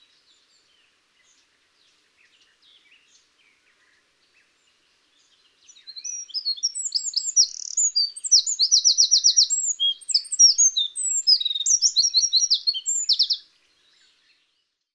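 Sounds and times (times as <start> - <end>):
Eurasian wren singing: 5.2 - 14.0.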